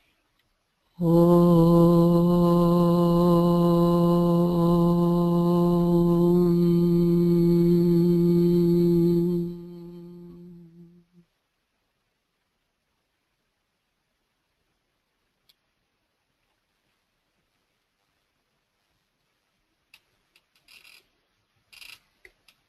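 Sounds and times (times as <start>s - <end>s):
group chanting: 0.9s - 11.1s.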